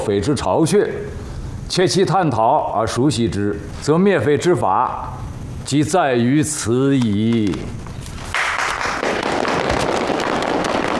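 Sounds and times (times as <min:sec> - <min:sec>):
speech: 0:00.0 - 0:07.9
audience applause: 0:08.3 - 0:10.9.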